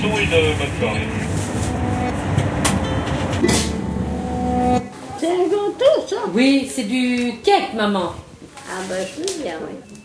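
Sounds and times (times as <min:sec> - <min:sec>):
speech: 0:00.0 - 0:01.4, 0:04.7 - 0:10.0
train arriving at Amboise station: 0:00.0 - 0:04.8.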